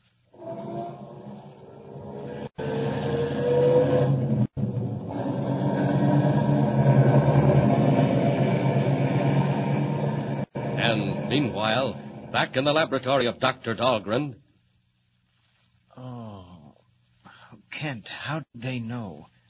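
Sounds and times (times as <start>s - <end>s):
car engine starting: 2.5s - 12.6s
speech: 11.3s - 14.4s, 17.8s - 19.3s.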